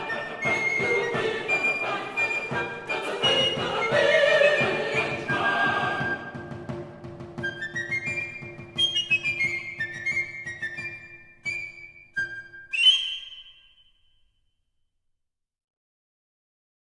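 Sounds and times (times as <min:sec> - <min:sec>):
choir singing a classical piece: 0:00.0 - 0:06.9
flute in a classical piece: 0:00.0 - 0:14.2.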